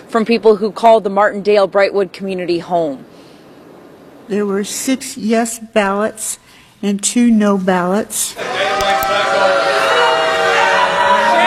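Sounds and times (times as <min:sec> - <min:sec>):
speech: 0:00.1 - 0:03.1, 0:04.3 - 0:10.1
crowd booing loudly: 0:08.4 - 0:11.4.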